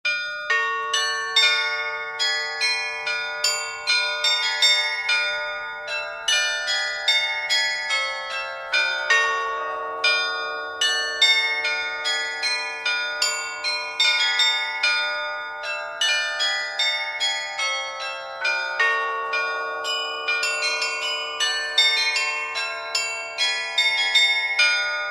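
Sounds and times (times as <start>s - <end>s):
bells ringing: 0.1s - 25.0s.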